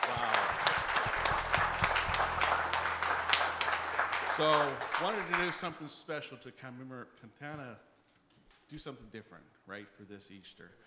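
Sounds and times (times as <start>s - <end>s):
audience clapping hands: 0.0s - 5.9s
speech: 4.4s - 7.9s, 8.7s - 10.8s.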